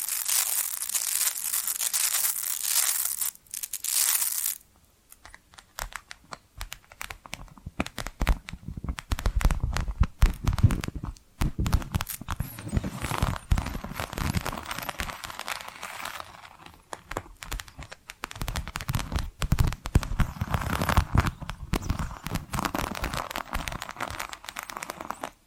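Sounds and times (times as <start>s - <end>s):
tapping and scratching: 5.2s - 25.4s.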